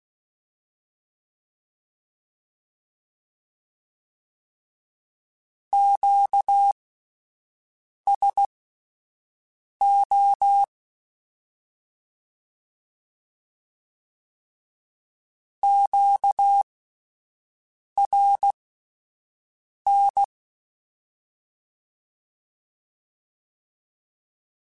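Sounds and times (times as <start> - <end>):
Morse code Q calls in CW code groups: 5.8 - 6.8, 8.1 - 8.5, 9.8 - 10.7, 15.6 - 16.6, 18.0 - 18.6, 19.9 - 20.3.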